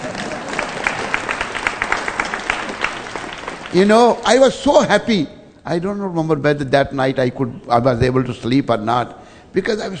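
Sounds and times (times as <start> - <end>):
audience clapping: 0.0 - 4.4
speech: 3.7 - 9.9.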